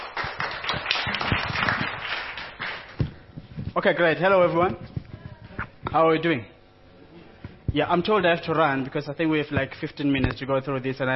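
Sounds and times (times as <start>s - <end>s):
audience round of applause: 0.0s - 3.0s
speech: 3.8s - 4.9s, 5.9s - 6.5s, 7.7s - 11.1s.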